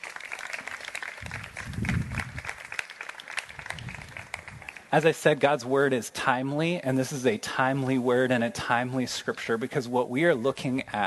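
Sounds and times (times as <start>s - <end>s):
audience applause: 0.0s - 5.1s
speech: 4.9s - 11.0s.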